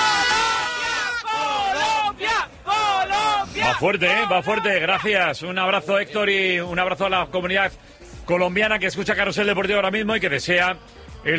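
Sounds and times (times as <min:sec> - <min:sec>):
shouted cheer of encouragement: 0:00.0 - 0:04.8
speech: 0:03.8 - 0:11.3.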